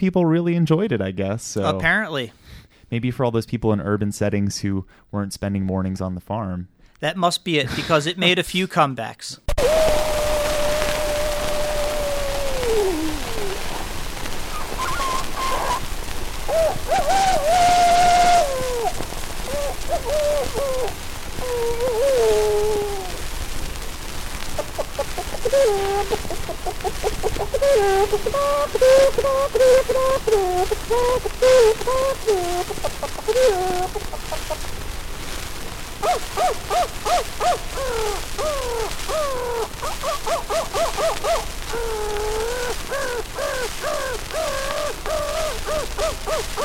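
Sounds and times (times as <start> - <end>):
speech: 0.0 - 9.9, 25.6 - 34.8, 36.0 - 46.6
human voices imitating a rooster crowing: 9.6 - 13.9, 14.5 - 15.9, 16.5 - 23.2, 24.6 - 34.7, 36.0 - 46.6.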